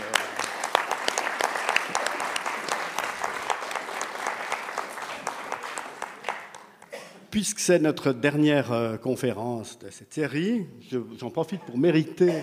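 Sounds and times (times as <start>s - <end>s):
audience applause: 0.0s - 6.9s
speech: 7.4s - 12.4s.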